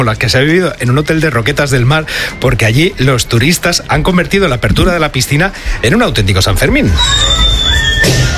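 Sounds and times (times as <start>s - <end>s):
speech: 0.0s - 7.4s
person whistling: 6.9s - 8.2s.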